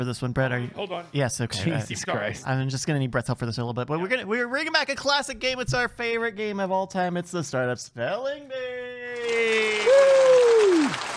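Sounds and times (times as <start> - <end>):
speech: 0.0 - 8.7
audience applause at a live comedy show: 9.2 - 11.1
person whooping: 9.2 - 11.1.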